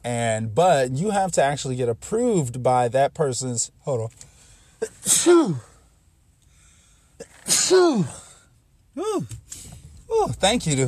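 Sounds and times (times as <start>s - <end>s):
speech: 0.0s - 5.7s, 7.7s - 8.2s, 9.0s - 9.4s, 10.1s - 10.8s
person sneezing: 4.8s - 5.8s, 7.2s - 8.4s, 9.0s - 9.3s.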